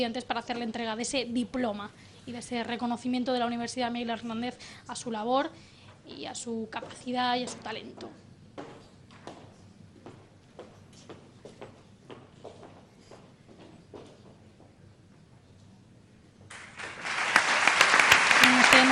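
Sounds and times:
speech: 0.0s - 8.2s
audience ovation: 16.5s - 18.9s.

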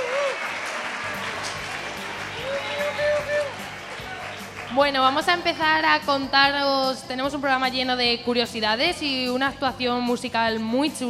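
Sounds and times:
audience applause: 0.0s - 4.8s
speech: 4.8s - 11.0s.

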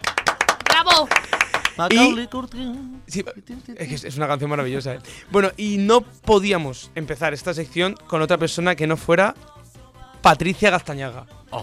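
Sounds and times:
applause: 0.0s - 2.2s
speech: 0.8s - 9.6s, 10.2s - 11.6s.

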